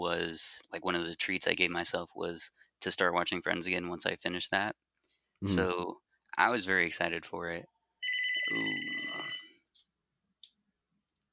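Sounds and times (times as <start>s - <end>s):
speech: 0.0s - 4.8s, 5.4s - 7.7s
landline telephone ringing: 8.0s - 9.6s.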